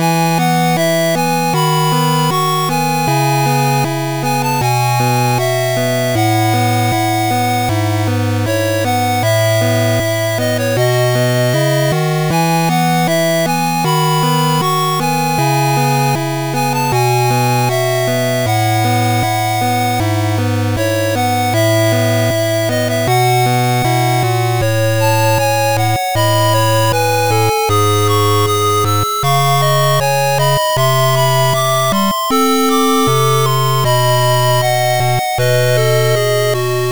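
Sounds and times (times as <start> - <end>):
8-bit music: 0.0 - 36.9.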